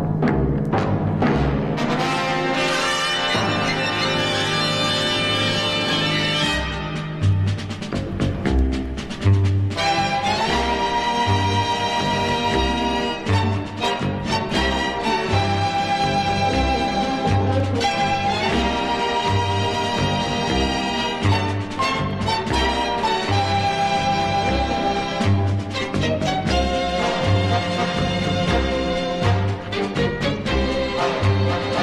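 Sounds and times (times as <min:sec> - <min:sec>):
strings: 0:00.0 - 0:31.8
brass: 0:00.7 - 0:31.8.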